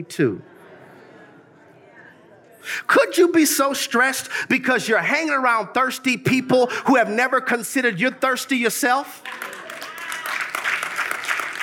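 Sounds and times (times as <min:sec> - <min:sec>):
speech: 0:00.0 - 0:00.5, 0:02.6 - 0:09.6
golf claps: 0:09.2 - 0:11.6.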